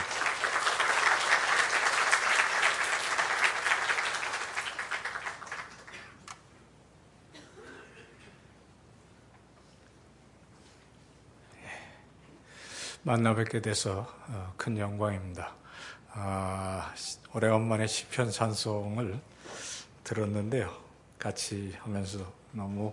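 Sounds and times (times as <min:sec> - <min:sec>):
audience applause: 0:00.0 - 0:06.2
speech: 0:13.0 - 0:19.3, 0:20.1 - 0:22.9
person sniffing: 0:19.4 - 0:20.0.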